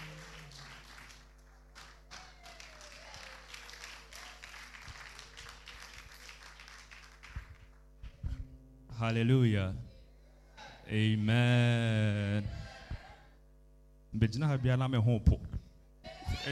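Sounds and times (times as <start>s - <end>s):
audience clapping: 0.0s - 8.2s
speech: 9.0s - 9.9s, 10.9s - 12.6s, 14.2s - 15.5s.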